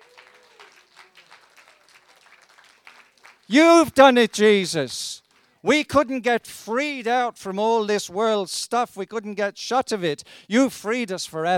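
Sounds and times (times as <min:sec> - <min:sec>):
audience applause: 0:00.0 - 0:04.5
speech: 0:03.5 - 0:11.5.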